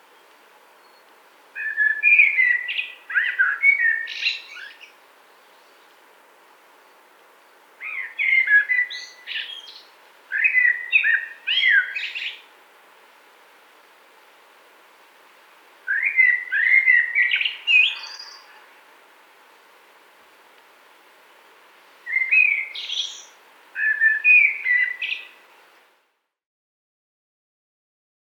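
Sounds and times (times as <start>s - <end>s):
Eurasian blackbird song phrase: 1.6s - 4.9s, 7.8s - 12.4s, 15.9s - 18.5s, 22.0s - 25.4s.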